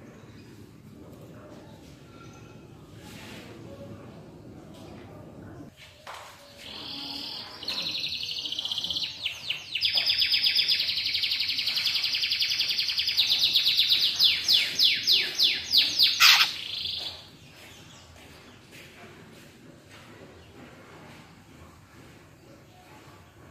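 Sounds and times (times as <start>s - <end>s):
greater green leafbird singing: 6.6s - 18.0s.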